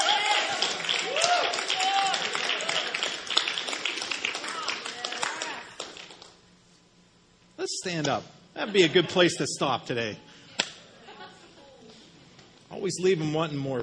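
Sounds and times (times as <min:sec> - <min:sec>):
crowd applauding: 0:00.0 - 0:06.4
speech: 0:07.8 - 0:10.3, 0:12.8 - 0:13.8
laughter: 0:08.6 - 0:09.4, 0:10.8 - 0:12.0.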